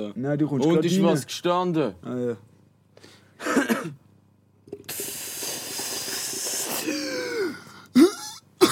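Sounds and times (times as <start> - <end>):
speech: 0.0 - 3.1
person coughing into a microphone: 3.4 - 4.0, 6.8 - 8.7.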